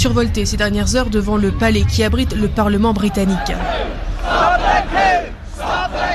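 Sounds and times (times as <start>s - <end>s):
speech: 0.0s - 5.3s
crowd chanting at an anti-Brexit rally on the lawns outside Westminster: 2.9s - 6.1s.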